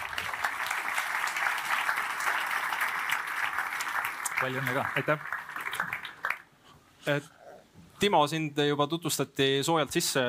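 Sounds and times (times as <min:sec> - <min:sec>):
audience applause: 0:00.0 - 0:06.5
speech: 0:04.4 - 0:05.4, 0:07.1 - 0:07.4, 0:08.0 - 0:10.2.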